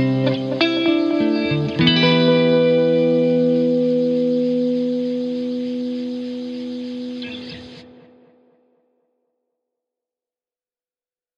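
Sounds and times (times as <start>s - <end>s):
shimmering guitar: 0.0s - 8.9s.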